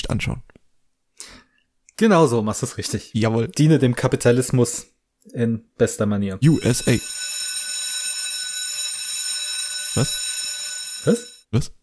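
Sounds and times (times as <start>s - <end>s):
speech: 0.1s - 0.6s, 2.0s - 7.2s, 10.0s - 10.2s, 11.0s - 11.8s
bell ringing: 6.4s - 11.4s.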